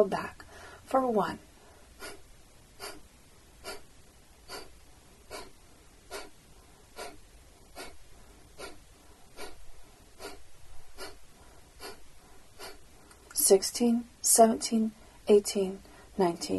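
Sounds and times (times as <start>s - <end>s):
speech: 0.0s - 2.2s, 13.5s - 16.5s
rapid breath-of-fire breathing exercise nasal exhalations: 1.6s - 13.3s.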